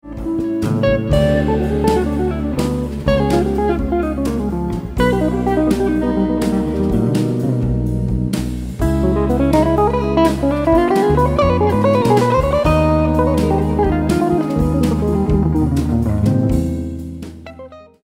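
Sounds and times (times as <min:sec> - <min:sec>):
guitar solo: 0:00.0 - 0:18.0.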